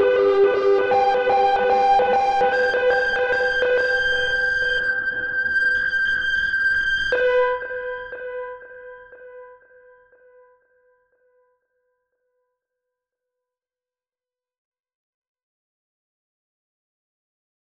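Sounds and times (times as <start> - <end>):
Synthi V synthesizer: 0.0 - 10.3.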